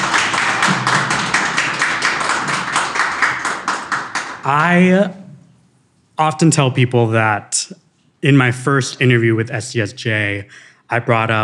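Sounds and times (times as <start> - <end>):
crowd applause: 0.0 - 4.8
speech: 4.4 - 5.2, 6.2 - 11.4.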